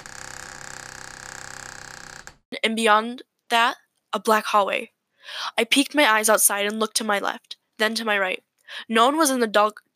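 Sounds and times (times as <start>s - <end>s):
old door creaking open: 0.0s - 2.4s
speech: 2.6s - 9.9s.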